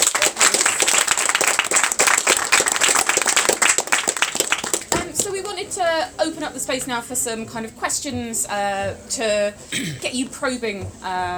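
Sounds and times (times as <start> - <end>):
audience applause: 0.0 - 5.7
speech: 6.0 - 11.3.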